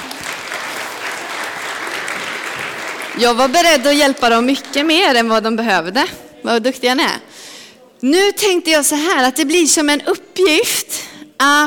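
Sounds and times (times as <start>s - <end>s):
audience applause: 0.0s - 3.9s
speech: 3.2s - 7.3s, 8.0s - 11.6s.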